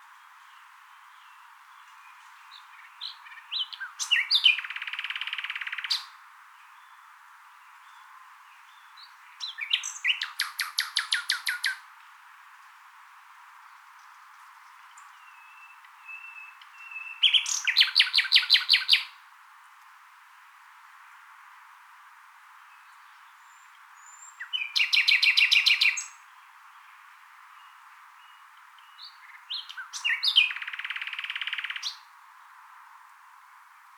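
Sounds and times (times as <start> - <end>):
common nightingale singing: 0.6 - 7.0, 7.8 - 11.8, 14.8 - 19.2, 22.7 - 32.1.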